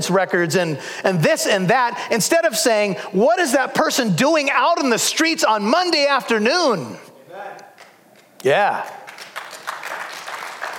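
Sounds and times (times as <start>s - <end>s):
speech: 0.0s - 7.6s, 8.4s - 9.0s
weak audience applause: 8.6s - 10.7s.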